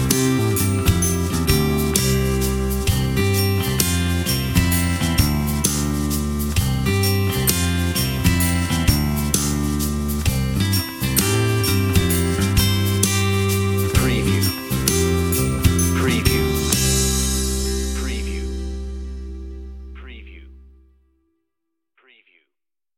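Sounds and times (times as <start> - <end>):
underscore music: 0.0 - 20.9.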